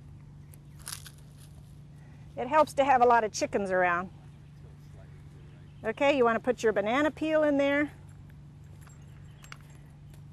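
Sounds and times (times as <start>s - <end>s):
eggshell being crumpled: 0.6s - 1.6s
speech: 2.4s - 4.2s, 5.8s - 8.0s.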